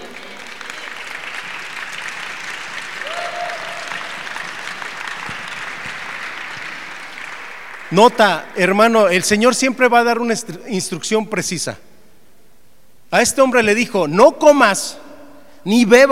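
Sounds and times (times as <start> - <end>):
audience applause: 0.0 - 8.5
speech: 7.9 - 11.8, 13.1 - 15.0, 15.6 - 16.0.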